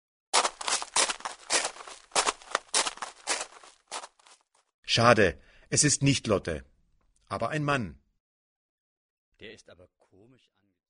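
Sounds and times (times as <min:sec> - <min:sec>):
crisp scuffing footsteps walking: 0:00.3 - 0:04.6
speech: 0:05.0 - 0:06.7, 0:07.3 - 0:08.0, 0:09.4 - 0:10.7.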